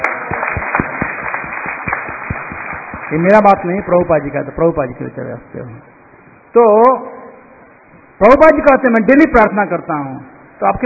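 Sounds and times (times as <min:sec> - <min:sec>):
audience clapping when invited: 0:00.0 - 0:04.3
speech: 0:03.1 - 0:06.0, 0:06.6 - 0:07.1, 0:08.2 - 0:10.8.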